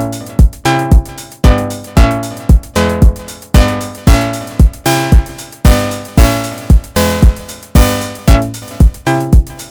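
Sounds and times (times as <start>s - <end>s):
Minimoog synthesizer chord sequence: 0.1s - 9.7s
Minimoog synthesizer noise: 1.5s - 9.7s.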